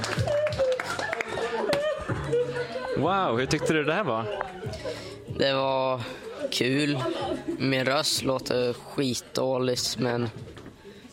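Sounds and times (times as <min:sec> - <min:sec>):
applause: 0:00.0 - 0:01.8
laughter: 0:00.0 - 0:05.3, 0:06.2 - 0:08.0
speech: 0:03.0 - 0:10.5.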